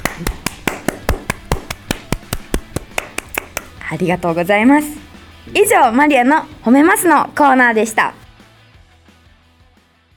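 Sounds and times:
applause: 0.0 - 3.7
speech: 0.2 - 0.4, 3.9 - 8.2.

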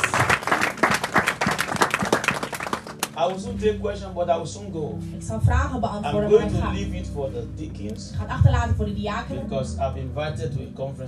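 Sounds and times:
audience clapping and applauding: 0.0 - 3.5
speech: 3.3 - 11.0.

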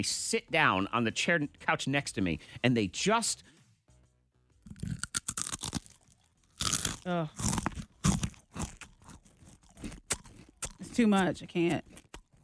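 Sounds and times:
speech: 0.0 - 3.6, 7.1 - 7.6, 11.0 - 12.0
crunching on a Cheez-It cracker: 4.7 - 12.4.

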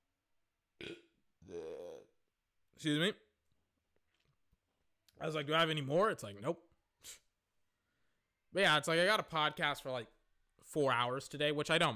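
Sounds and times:
speech: 0.8 - 1.7, 2.8 - 3.2, 5.2 - 7.2, 8.5 - 11.9
burp: 0.8 - 2.1.

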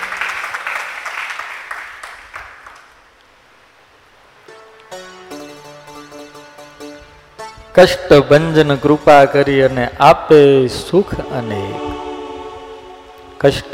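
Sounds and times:
audience clapping for a kirtan singer during a Sundarkand katha: 0.0 - 3.0
sustained musical tones: 4.4 - 13.7
speech: 7.8 - 12.0, 13.4 - 13.7.

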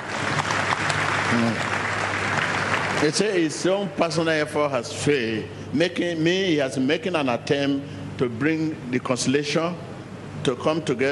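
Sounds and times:
audience clapping for a woman at a religious gathering: 0.0 - 3.6
speech: 1.3 - 1.7, 3.0 - 11.1.

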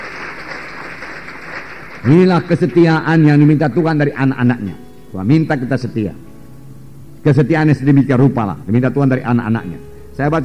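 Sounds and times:
crowd applauding: 0.0 - 3.2
speech: 2.0 - 6.3, 7.2 - 10.4.

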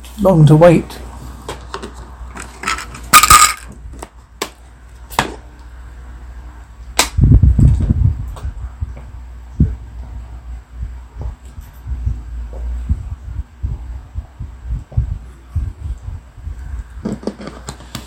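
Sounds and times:
speech: 0.2 - 1.0
Dalek time machine low throbbing hum: 6.0 - 17.0.

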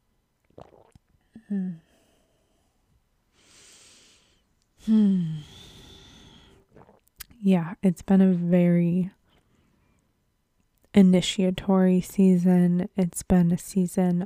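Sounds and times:
person sipping tea: 0.5 - 2.1, 5.2 - 7.3
breathy vocal sounds: 1.3 - 2.8, 3.4 - 7.0
speech: 1.5 - 1.9, 4.8 - 5.5, 7.4 - 9.2, 11.0 - 14.2
voiced exhale: 3.4 - 6.7.

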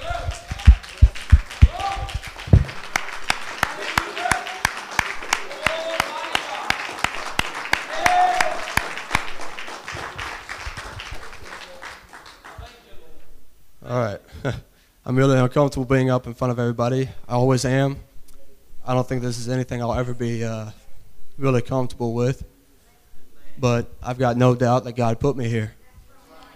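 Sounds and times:
audience hand clapping in a sharp rhythm: 0.0 - 12.8
speech: 15.2 - 18.1, 18.9 - 20.8, 21.4 - 22.5, 23.6 - 25.8.

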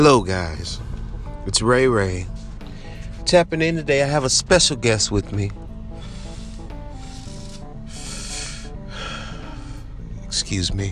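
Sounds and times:
speech: 0.0 - 0.9, 1.5 - 2.3, 3.2 - 5.6, 10.5 - 10.9
steady low tonal background: 0.0 - 10.9
person smoking, inhaling and exhaling smoke: 5.9 - 9.9.

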